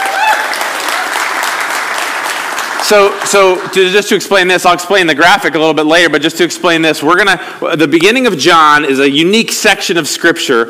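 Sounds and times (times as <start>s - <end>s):
audience applause: 0.0s - 3.8s
speech: 2.9s - 10.6s.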